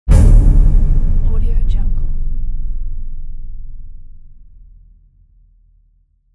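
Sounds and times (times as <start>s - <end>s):
impact: 0.0s - 4.9s.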